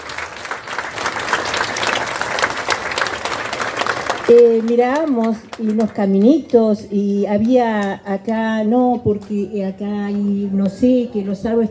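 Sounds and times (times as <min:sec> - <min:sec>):
audience applause: 0:00.0 - 0:05.9
speech: 0:04.3 - 0:11.6.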